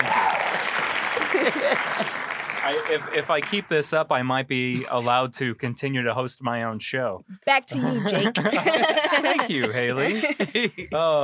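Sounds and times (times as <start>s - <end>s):
clapping sound effect: 0.0s - 3.7s
laughter: 0.6s - 3.7s, 4.6s - 5.8s, 7.7s - 11.2s
speech: 1.4s - 11.2s.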